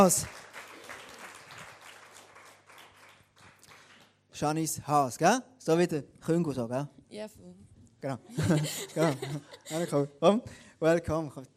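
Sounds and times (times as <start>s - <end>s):
speech: 0.0s - 0.4s, 4.4s - 11.5s
audience applause: 0.0s - 4.2s
laughter: 8.3s - 10.1s.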